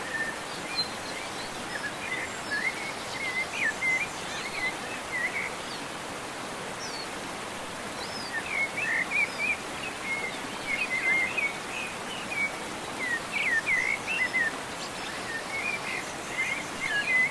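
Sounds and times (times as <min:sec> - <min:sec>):
birds singing in nature: 0:00.0 - 0:06.1, 0:06.7 - 0:07.3, 0:07.9 - 0:17.3.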